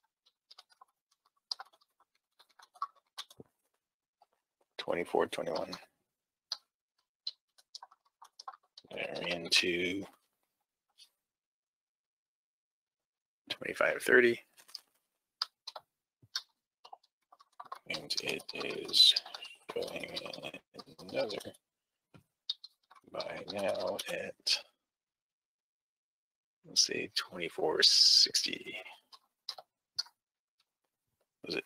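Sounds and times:
typing on a computer keyboard: 0.3 - 3.5, 15.4 - 21.5, 22.5 - 24.4
speech: 4.9 - 5.9, 9.5 - 10.2, 13.6 - 14.5, 18.3 - 21.6, 23.1 - 24.6, 26.8 - 29.0.

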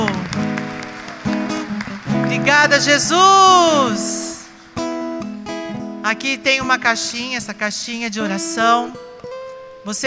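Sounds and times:
audience applause: 0.0 - 4.8
speech: 2.4 - 4.2, 6.0 - 9.1, 9.8 - 10.0.

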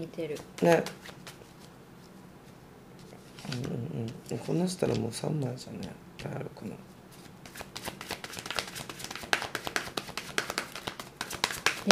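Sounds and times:
speech: 0.0 - 1.3, 3.5 - 6.9
cards being shuffled: 0.3 - 1.8, 3.0 - 5.9, 7.1 - 11.8.

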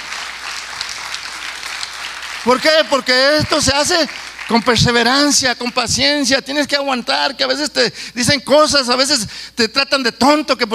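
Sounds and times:
audience applause: 0.0 - 5.7
speech: 2.4 - 10.7.

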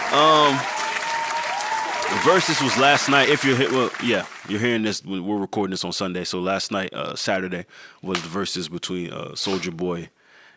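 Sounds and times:
voiced cheer or whoop: 0.0 - 4.7
round of applause: 0.0 - 4.8
speech: 0.1 - 0.8, 2.1 - 10.2.

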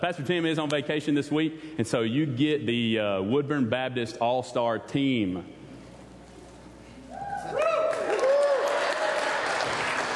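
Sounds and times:
speech: 0.0 - 5.6
whoops and cheers: 7.1 - 9.9
audience applause: 7.6 - 10.1.

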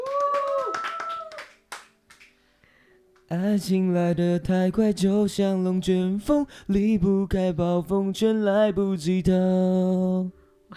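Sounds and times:
applause from a small group: 0.0 - 2.4
speech: 3.3 - 10.7.

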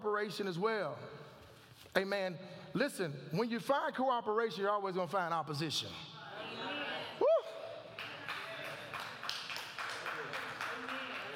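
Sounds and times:
speech: 0.0 - 6.1
hand claps: 8.0 - 11.3.

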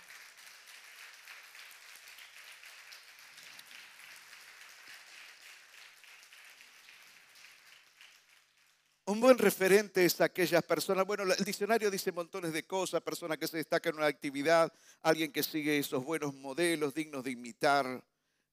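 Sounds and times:
audience applause: 0.0 - 9.0
speech: 9.1 - 18.5.

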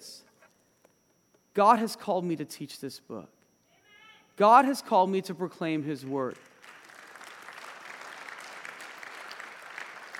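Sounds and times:
speech: 1.6 - 3.4, 4.4 - 6.5
audience applause: 6.4 - 10.1.

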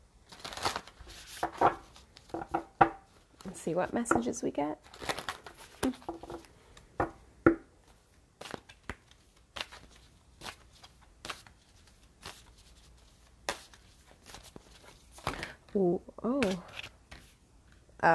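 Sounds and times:
Angels and Ancestors oracle card deck being shuffled, cards spilling out: 0.3 - 3.6, 4.8 - 6.9, 7.8 - 15.5, 16.3 - 17.4
speech: 3.6 - 5.0.

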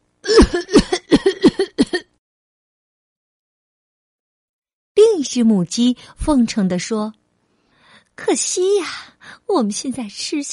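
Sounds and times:
loud coughing: 0.2 - 2.1
speech: 5.3 - 7.2, 8.2 - 10.5.

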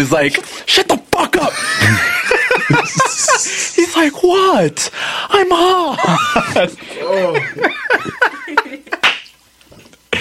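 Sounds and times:
speech: 0.0 - 2.1, 2.7 - 8.7
laughter: 1.4 - 3.8, 5.9 - 9.0
loud hand clapping: 9.0 - 9.4.

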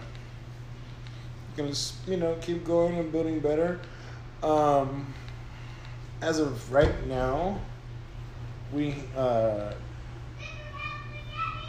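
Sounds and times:
speech: 1.6 - 5.2, 6.2 - 7.7, 8.7 - 9.9
young daughter yelling: 10.4 - 11.6.

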